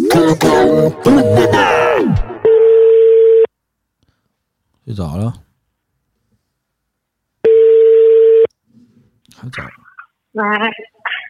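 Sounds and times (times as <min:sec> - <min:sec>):
speech: 0:00.1 - 0:02.2, 0:04.9 - 0:05.4, 0:09.4 - 0:09.8, 0:10.4 - 0:11.2
telephone ringing tone: 0:02.5 - 0:03.5, 0:07.4 - 0:08.5.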